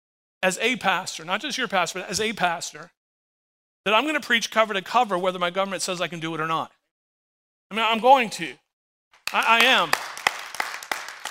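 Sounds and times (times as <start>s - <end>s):
speech: 0.4s - 3.0s, 3.8s - 6.8s, 7.7s - 8.6s, 9.3s - 10.0s
audience applauding: 9.2s - 11.2s.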